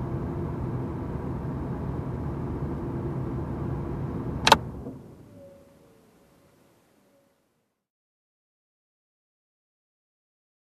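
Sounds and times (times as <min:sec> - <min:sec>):
car air conditioning turning on: 0:00.0 - 0:05.4.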